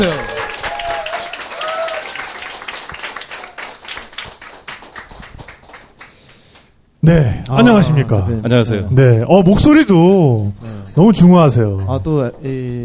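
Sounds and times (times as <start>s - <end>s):
applause welcoming a guest: 0.0s - 6.8s
speech: 7.1s - 12.8s.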